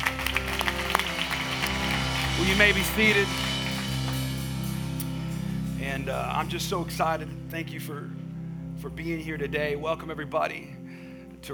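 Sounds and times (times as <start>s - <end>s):
audience hand clapping: 0.0s - 5.3s
speech: 2.4s - 3.5s, 6.0s - 8.2s, 8.8s - 10.8s.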